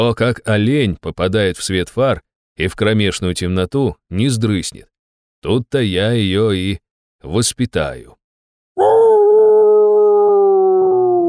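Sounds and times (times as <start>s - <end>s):
speech: 0.0s - 8.2s, 8.8s - 9.0s
werewolf howling with muzzle raised to the sky: 8.8s - 11.2s.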